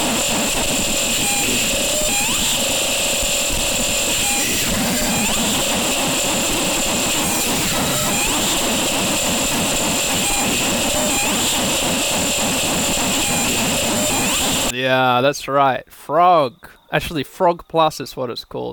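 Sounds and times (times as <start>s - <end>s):
noise music of harsh hiss and grinding texture: 0.0s - 14.7s
steady high whining bands: 0.0s - 14.7s
speech: 15.2s - 18.7s.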